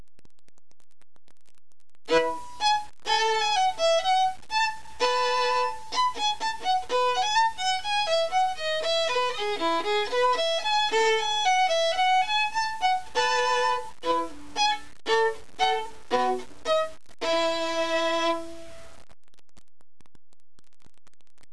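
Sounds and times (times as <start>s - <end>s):
violin: 2.1s - 18.8s.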